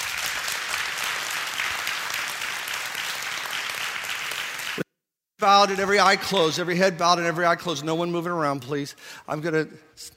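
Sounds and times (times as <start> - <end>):
audience clapping in sustained applause: 0.0 - 4.9
speech: 5.4 - 10.1.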